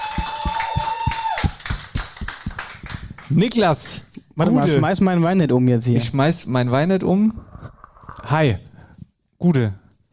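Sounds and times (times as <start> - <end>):
small round of applause: 0.0 - 4.0
speech: 3.3 - 7.5, 8.3 - 8.7, 9.4 - 9.8.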